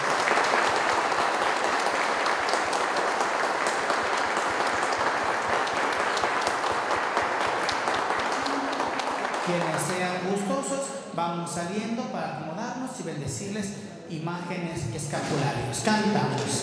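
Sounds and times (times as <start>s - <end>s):
audience applause: 0.0s - 10.6s, 15.2s - 16.6s
speech: 11.2s - 16.6s.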